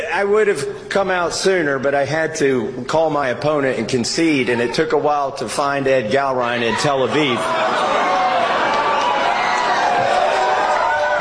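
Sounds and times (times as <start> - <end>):
speech: 0.1 - 8.6
crowd cheering: 6.5 - 11.1.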